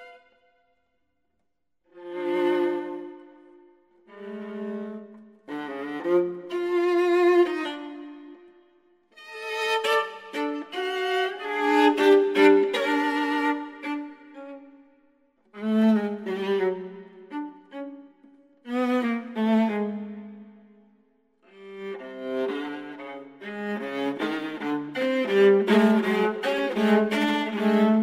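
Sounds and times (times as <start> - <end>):
viola playing a bagatelle prelude: 0.0 - 0.5, 1.9 - 8.6, 9.2 - 14.8, 15.5 - 20.7, 21.5 - 28.0.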